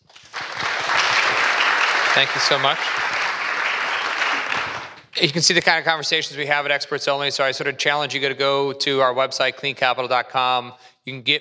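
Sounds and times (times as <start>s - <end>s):
audience applause for panelists: 0.0s - 5.1s
speech: 2.2s - 3.0s, 5.2s - 11.3s.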